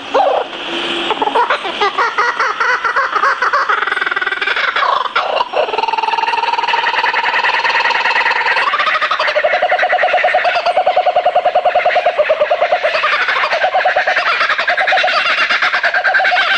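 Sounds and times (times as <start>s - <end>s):
laughing kookaburra laughter: 1.1s - 16.5s.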